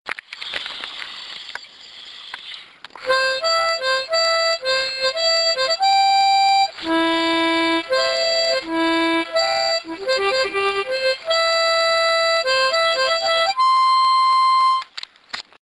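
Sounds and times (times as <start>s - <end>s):
harmonica: 3.0s - 14.9s.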